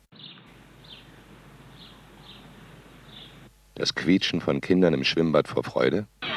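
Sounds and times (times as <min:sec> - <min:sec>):
hiss: 0:00.0 - 0:06.3
sparrow chirping: 0:00.1 - 0:03.5
speech: 0:03.8 - 0:06.3.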